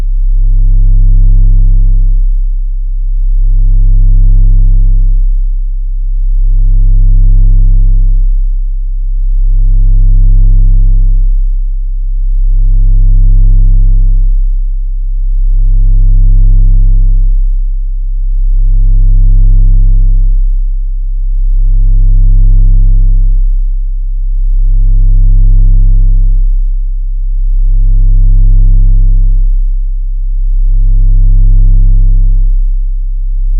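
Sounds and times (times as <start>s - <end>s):
33 Hz very low bass tone from a vibrating speaker: 0.0s - 33.5s.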